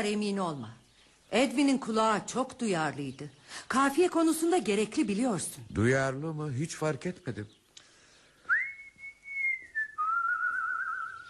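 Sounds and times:
speech: 0:00.0 - 0:07.6
person whistling a tune: 0:08.5 - 0:11.2.

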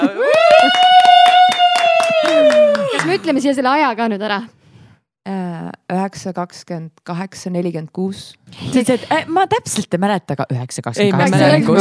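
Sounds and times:
laughter: 0:00.0 - 0:01.0
long sustained vocal cheer: 0:00.0 - 0:03.1
steady hand clapping: 0:00.2 - 0:03.2
speech: 0:03.2 - 0:04.6, 0:05.2 - 0:11.8.

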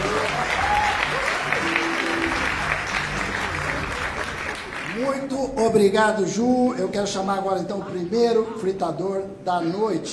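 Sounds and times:
faint cheers and voices in the crowd: 0:00.0 - 0:03.0
audience applause: 0:00.0 - 0:05.3
speech: 0:05.2 - 0:10.1.

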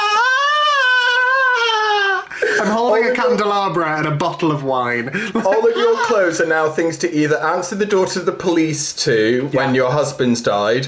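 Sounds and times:
voice imitating a ghostly wail: 0:00.0 - 0:02.4
laughter: 0:00.6 - 0:03.2, 0:04.9 - 0:06.7
speech: 0:02.6 - 0:10.8.

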